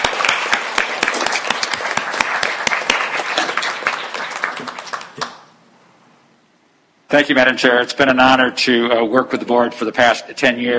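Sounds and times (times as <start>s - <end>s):
audience applause: 0.0s - 5.5s
speech: 7.1s - 10.7s.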